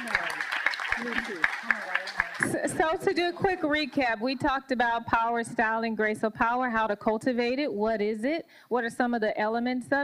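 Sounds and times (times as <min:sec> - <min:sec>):
audience applause for panelists: 0:00.0 - 0:03.5
speech: 0:01.0 - 0:10.0.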